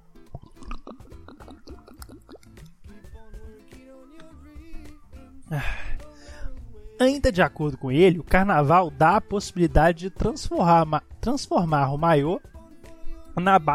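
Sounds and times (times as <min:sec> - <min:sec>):
person drinking water: 0:00.3 - 0:02.9
speech: 0:05.5 - 0:05.8, 0:07.0 - 0:12.5, 0:13.4 - 0:13.7.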